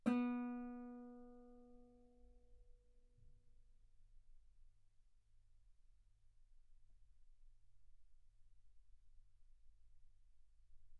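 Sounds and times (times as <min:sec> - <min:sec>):
guitar B3 note on B string played fortissimo: 0:00.0 - 0:01.4.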